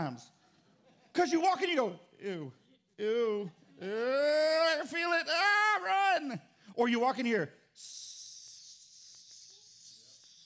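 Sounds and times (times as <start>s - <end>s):
speech: 0.0s - 0.4s, 1.2s - 8.0s
person imitating hissing snakes: 7.8s - 10.4s.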